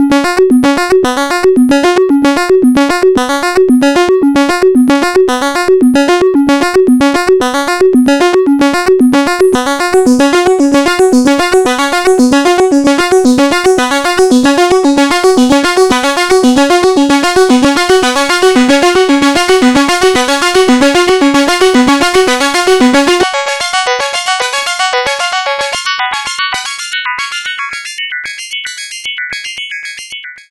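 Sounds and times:
Panharmonium oscillator wave via CV bandwidth: 0:00.0 - 0:30.4.

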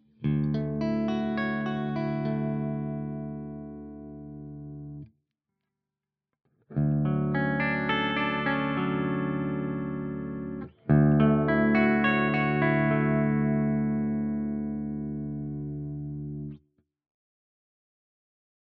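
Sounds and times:
RGT1270 guitar clean arpeggios in all pickup positions: 0:00.0 - 0:05.1, 0:06.7 - 0:16.6.

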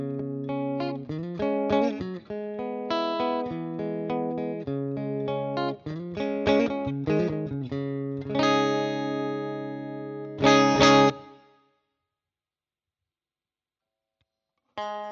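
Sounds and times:
Fender chords: 0:00.0 - 0:11.4.

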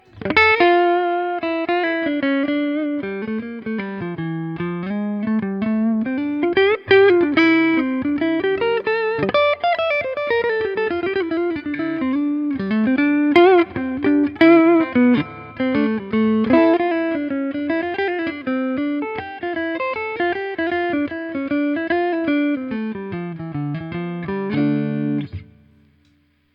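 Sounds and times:
clean electric guitar on neck pickup: 0:00.0 - 0:26.5.

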